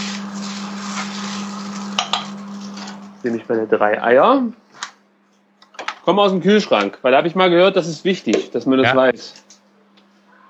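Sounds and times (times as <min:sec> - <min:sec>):
stirring noodles in a pan: 0:00.0 - 0:03.1
speech: 0:03.2 - 0:04.6, 0:06.1 - 0:09.4.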